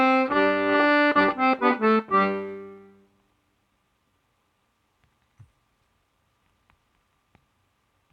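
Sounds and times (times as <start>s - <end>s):
Scottish folk session music: 0.0s - 3.1s.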